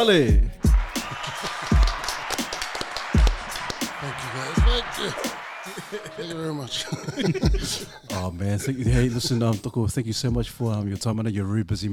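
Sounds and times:
speech: 0.0s - 0.6s, 4.3s - 11.9s
applause and cheering: 0.6s - 7.8s
laughter: 0.9s - 2.3s, 3.9s - 9.8s.

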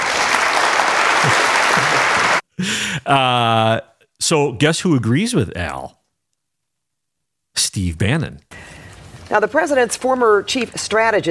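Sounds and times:
applause: 0.0s - 2.8s
laughter: 1.0s - 3.8s
speech: 1.2s - 1.4s, 2.6s - 6.0s, 7.6s - 8.7s, 9.3s - 11.2s.

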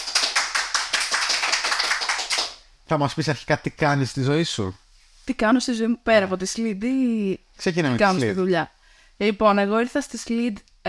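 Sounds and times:
audience applause: 0.0s - 2.6s
speech: 2.9s - 10.8s.

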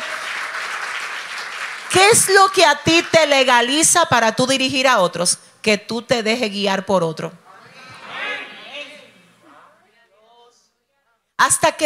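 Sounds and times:
audience applause: 0.0s - 2.0s
speech: 2.0s - 7.4s, 11.4s - 11.8s.

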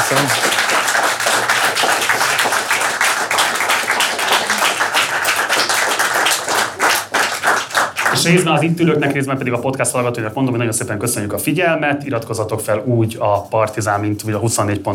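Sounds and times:
audience applause: 0.0s - 8.7s
speech: 0.1s - 0.5s, 8.2s - 14.9s.

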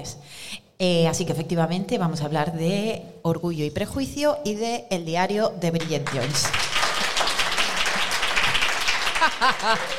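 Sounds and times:
speech: 0.0s - 6.6s, 9.4s - 9.9s
applause: 5.8s - 9.9s
laughter: 9.0s - 9.9s.

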